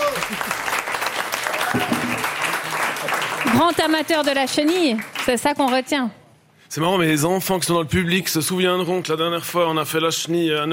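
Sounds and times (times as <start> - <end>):
audience applause: 0.0 - 5.6
speech: 3.6 - 10.7.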